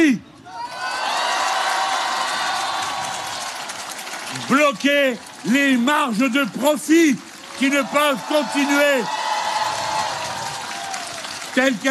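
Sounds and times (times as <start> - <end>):
rally crowd applauding and cheering: 0.8 - 11.8
speech: 4.4 - 9.2, 11.6 - 11.8.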